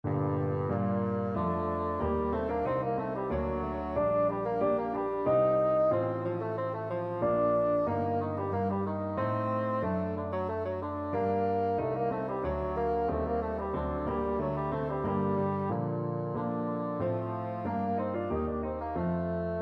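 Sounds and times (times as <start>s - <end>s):
bassoon playing a rondeau: 0.1s - 19.5s.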